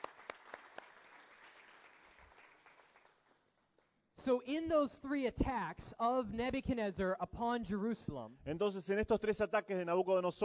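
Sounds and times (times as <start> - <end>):
audience applause: 0.0 - 3.5
speech: 4.2 - 10.4.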